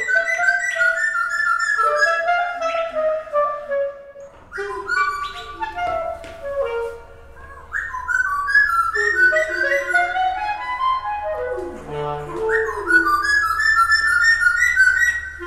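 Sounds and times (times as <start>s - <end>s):
bird chirping and trilling: 0.0s - 3.0s, 4.5s - 6.2s, 7.3s - 11.1s, 12.4s - 15.4s
clarinet playing sustained gliding phrases: 0.0s - 15.4s.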